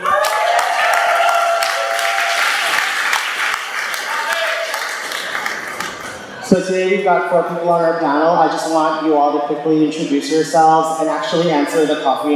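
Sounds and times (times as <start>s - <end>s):
audience applause: 0.0s - 6.2s
speech: 6.5s - 12.3s.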